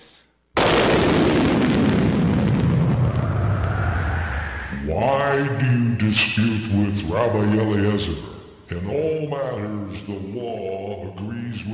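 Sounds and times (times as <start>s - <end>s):
thunder crack and rumble: 0.6s - 4.7s
speech: 5.0s - 11.7s.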